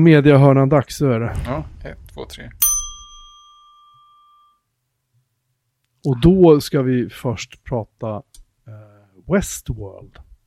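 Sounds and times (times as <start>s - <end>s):
speech: 0.0s - 2.6s, 6.0s - 10.2s
bright metallic chime opening a media segment: 2.6s - 4.6s.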